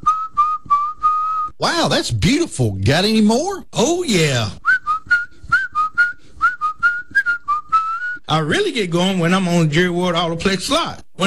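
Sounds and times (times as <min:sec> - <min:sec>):
person whistling a lively tune: 0:00.0 - 0:01.6, 0:04.6 - 0:08.3
speech: 0:01.6 - 0:04.6, 0:08.3 - 0:11.2.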